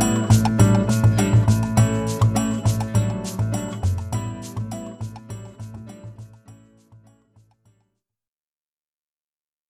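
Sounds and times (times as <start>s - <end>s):
Latin style guitar: 0.0s - 7.6s.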